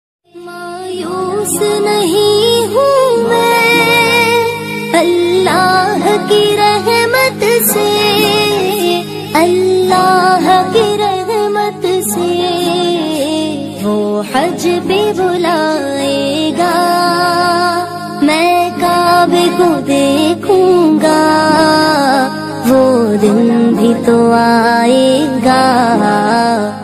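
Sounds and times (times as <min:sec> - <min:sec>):
Islamic naat ringtone: 0:00.4 - 0:26.8.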